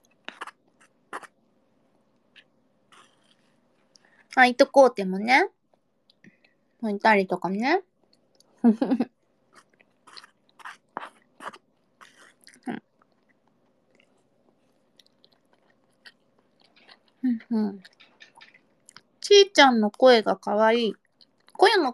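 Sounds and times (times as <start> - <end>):
chewing while eating eel: 0.0 - 1.4, 2.2 - 4.1, 9.5 - 19.1
speech: 4.4 - 5.6, 6.8 - 7.9, 8.6 - 9.1, 17.5 - 17.9, 19.4 - 21.0, 21.7 - 21.9.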